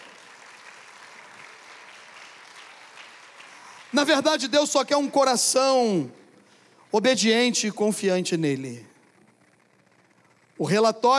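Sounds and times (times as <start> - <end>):
applause: 0.0 - 4.8
speech: 3.9 - 6.2, 6.9 - 8.9, 10.6 - 11.1.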